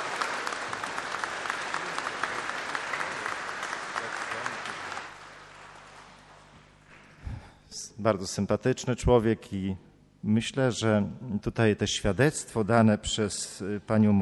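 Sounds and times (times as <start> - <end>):
audience clapping: 0.0 - 7.2
quiet room hum: 0.0 - 14.2
speech: 8.0 - 14.2.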